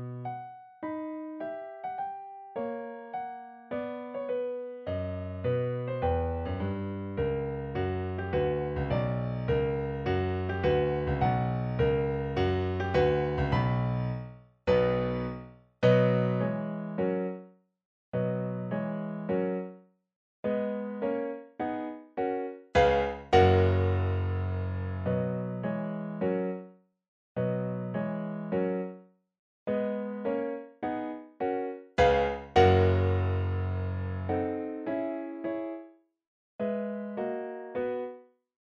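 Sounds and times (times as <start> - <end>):
piano piece: 0.0 - 17.5, 18.2 - 19.8, 20.4 - 26.7, 27.4 - 29.0, 29.7 - 35.9, 36.6 - 38.2.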